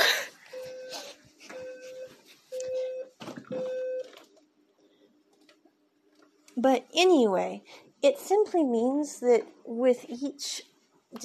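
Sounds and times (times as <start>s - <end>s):
electronic alarm beeps: 0.5s - 4.2s
speech: 6.6s - 11.2s.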